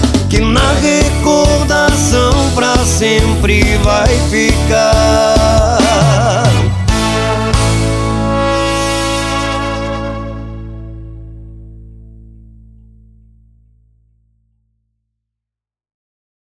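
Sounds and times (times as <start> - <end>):
band playing at a bar table: 0.0 - 11.7.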